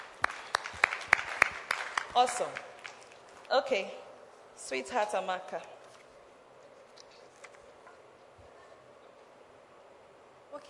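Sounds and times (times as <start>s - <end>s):
audience clapping: 0.0s - 3.5s
hiss: 0.0s - 10.6s
speech: 2.2s - 2.7s, 3.5s - 4.0s, 4.6s - 5.8s.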